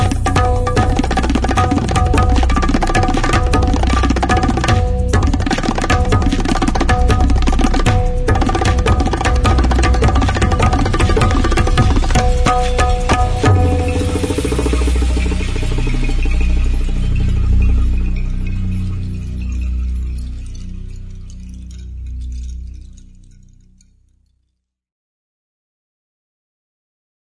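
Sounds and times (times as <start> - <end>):
taiko drum: 0.0 - 18.4
tabla: 0.0 - 22.8.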